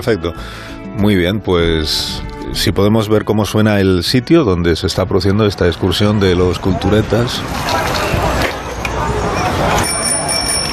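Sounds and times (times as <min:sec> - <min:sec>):
speech: 0:00.0 - 0:08.1
bicycle bell ringing: 0:09.4 - 0:10.7.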